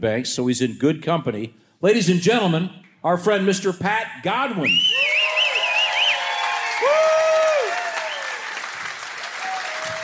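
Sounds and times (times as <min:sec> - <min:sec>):
speech: 0:00.0 - 0:05.2
high whistles: 0:04.6 - 0:07.2
whoops: 0:04.9 - 0:08.7, 0:09.3 - 0:10.0
audience applause: 0:05.2 - 0:10.0.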